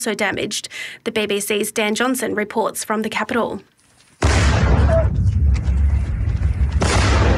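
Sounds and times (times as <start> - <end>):
speech: 0.0 - 5.3
heavy explosion boom during a night-time Russian attack on Kyiv: 4.2 - 7.3.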